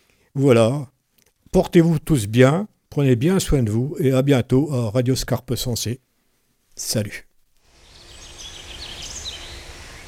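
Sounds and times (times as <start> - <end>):
outdoor hiss: 0.0 - 10.0
speech: 0.4 - 0.9, 1.5 - 6.1, 6.8 - 7.3
moorhens calling: 7.8 - 10.0.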